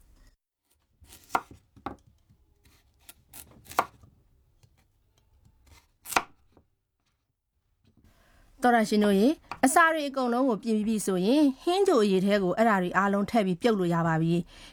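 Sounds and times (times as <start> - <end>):
knife slicing peeled red onions and potatoes into thick rings: 1.0 - 4.1, 5.6 - 6.6
speech: 8.6 - 14.7.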